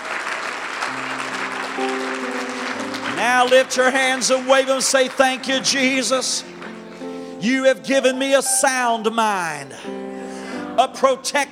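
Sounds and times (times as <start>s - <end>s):
audience clapping: 0.0s - 7.0s
speech: 3.2s - 6.6s, 7.4s - 10.0s, 10.8s - 11.5s.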